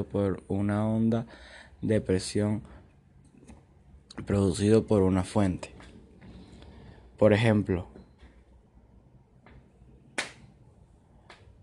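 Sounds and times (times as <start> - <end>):
speech: 0.0 - 2.8, 4.2 - 5.8, 7.2 - 7.9
low steady hum: 0.0 - 11.6
single hand clap: 10.2 - 10.5.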